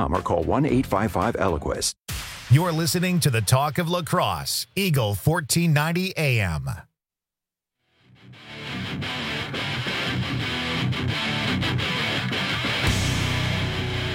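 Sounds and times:
speech: 0.0 - 6.9
heavy guitar music: 8.0 - 14.1.

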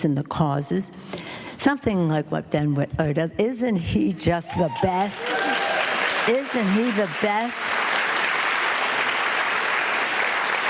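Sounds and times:
speech: 0.0 - 5.6, 6.3 - 7.8
audience applauding a speaker: 4.7 - 10.6.

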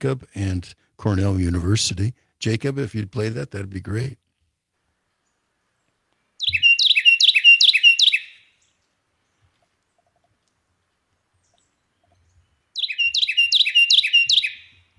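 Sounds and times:
speech: 0.0 - 4.2
Carolina wren singing loud ringing phrases: 6.4 - 8.8, 11.4 - 14.9.

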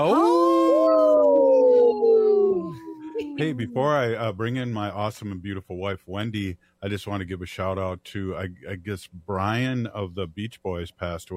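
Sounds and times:
speech: 0.0 - 0.4, 3.4 - 11.3
people howling like wolves: 0.0 - 4.0.

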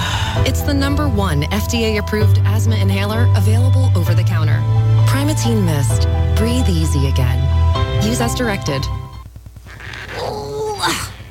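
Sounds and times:
speech: 0.4 - 7.4, 8.0 - 9.0
person groaning while straining to open a stuck jar in a kitchen: 10.1 - 11.2.

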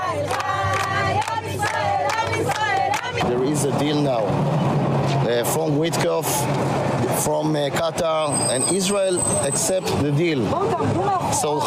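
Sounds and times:
crowd of protesters shouting and chanting: 0.0 - 4.1, 5.7 - 11.6
speech: 3.2 - 11.6.

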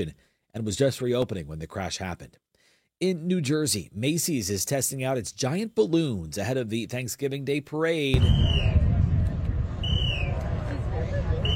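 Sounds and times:
speech: 0.0 - 9.0
whistles directing balloon handling crews: 8.2 - 8.8, 9.8 - 10.4
low rumble of crowd murmur: 8.2 - 11.5
outdoor noise: 8.2 - 11.5.

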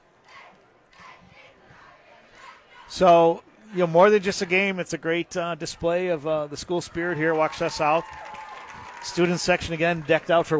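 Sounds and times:
cheerleaders doing a cheer on a high school football field: 0.2 - 3.3
speech: 2.9 - 8.3, 9.0 - 10.5.

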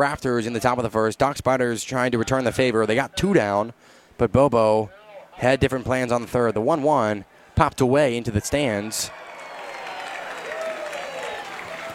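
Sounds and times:
speech: 0.0 - 9.2
baseball crowd cheering: 8.2 - 11.9.

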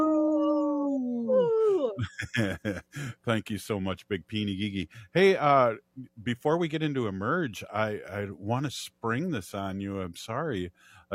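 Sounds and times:
people imitating wolf howl: 0.0 - 2.0
laughter: 2.0 - 3.5
speech: 2.0 - 11.1.

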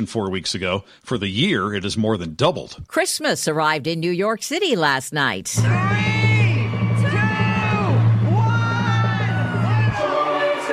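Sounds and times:
speech: 0.0 - 6.3
large crowd cheering at tree lighting: 5.6 - 10.7.

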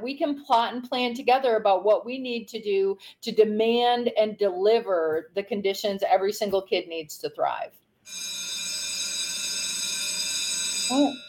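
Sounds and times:
speech: 0.0 - 8.4, 10.9 - 11.2
bell ringing: 8.1 - 11.2.

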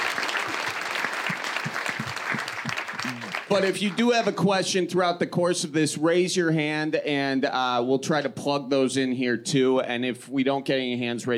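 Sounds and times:
audience applause: 0.0 - 4.4
speech: 3.5 - 11.3.

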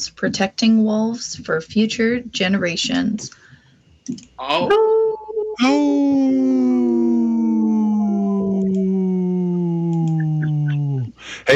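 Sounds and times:
speech: 0.0 - 3.4, 4.0 - 5.0, 5.6 - 7.0
person howling: 4.4 - 11.1.

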